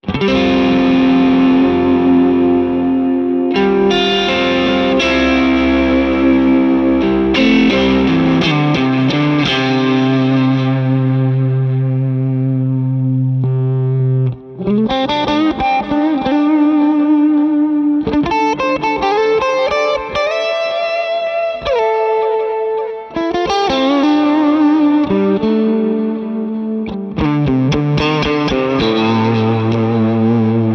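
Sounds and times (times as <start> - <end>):
Lonestar compressor guitar with delay and reverb: 0.0 - 30.7.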